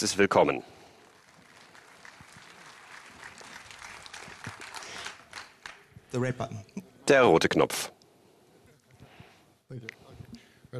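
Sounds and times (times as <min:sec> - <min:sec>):
speech: 0:00.0 - 0:00.8, 0:06.1 - 0:08.0, 0:09.7 - 0:10.0
audience clapping loudly: 0:00.8 - 0:06.1.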